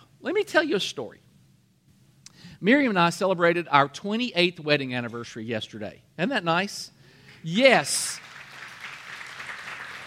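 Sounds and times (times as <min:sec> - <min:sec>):
speech: 0:00.2 - 0:01.2, 0:02.6 - 0:08.3
audience applause: 0:08.1 - 0:10.0.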